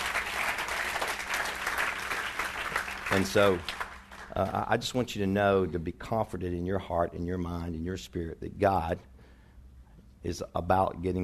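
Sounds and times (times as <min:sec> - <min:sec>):
audience clapping: 0:00.0 - 0:04.8
speech: 0:03.1 - 0:03.8, 0:04.4 - 0:09.1, 0:10.2 - 0:11.2.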